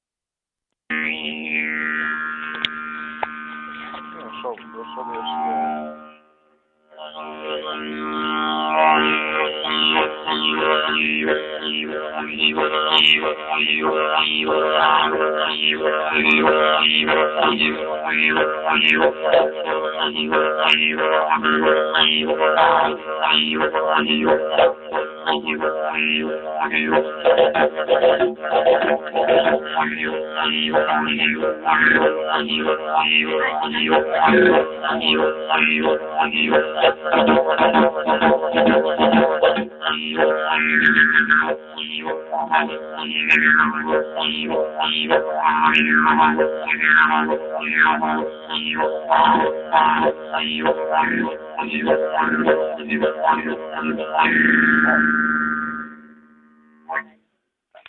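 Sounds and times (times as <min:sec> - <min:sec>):
didgeridoo: 0:00.9 - 0:57.2.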